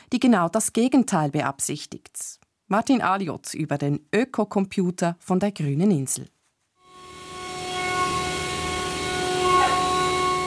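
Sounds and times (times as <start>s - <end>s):
speech: 0.1s - 6.4s
computer-controlled woodworking machine sawing and milling: 6.9s - 10.4s.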